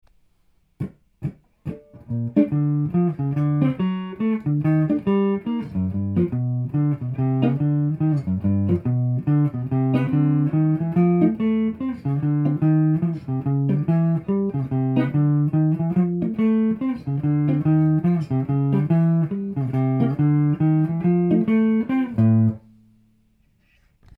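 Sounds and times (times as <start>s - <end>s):
bass: 0.8s - 22.7s.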